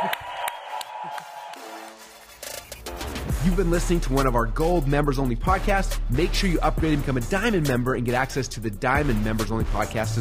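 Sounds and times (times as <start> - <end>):
audience applause: 0.0 - 2.3
speech: 3.4 - 10.1.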